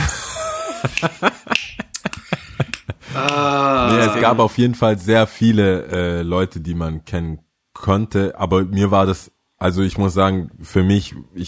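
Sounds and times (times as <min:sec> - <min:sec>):
laughter: 0:00.0 - 0:04.4
hand clap: 0:00.9 - 0:03.4
speech: 0:01.0 - 0:01.4, 0:04.2 - 0:11.4.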